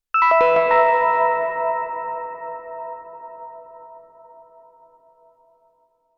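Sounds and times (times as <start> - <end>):
bells on a Novation Peak synthesizer: 0.2 - 4.7.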